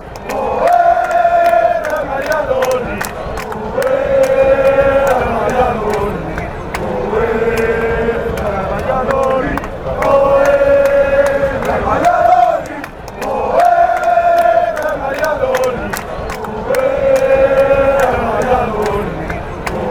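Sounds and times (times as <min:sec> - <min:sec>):
football fans chanting: 0:00.0 - 0:19.9.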